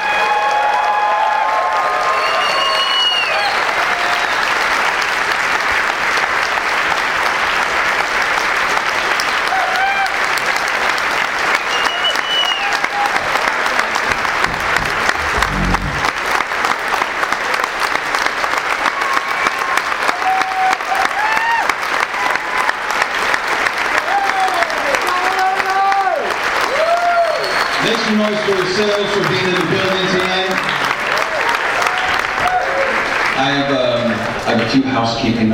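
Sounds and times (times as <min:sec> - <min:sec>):
audience cheering: 0:00.0 - 0:05.3, 0:08.9 - 0:34.3
audience applause for panel speakers: 0:00.0 - 0:35.4
whistles: 0:02.1 - 0:04.6, 0:11.5 - 0:12.9, 0:27.2 - 0:28.0.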